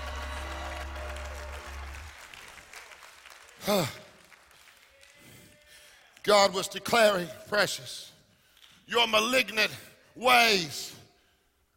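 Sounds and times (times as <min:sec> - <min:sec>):
loud whoop: 0:00.0 - 0:02.1
church congregation cheering and applauding: 0:00.0 - 0:06.3
speech: 0:03.6 - 0:04.0, 0:06.2 - 0:08.1, 0:08.9 - 0:11.0.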